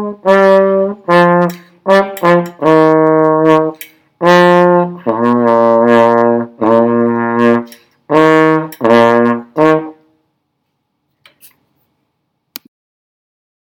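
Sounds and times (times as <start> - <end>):
trombone melody: 0.0 - 10.2.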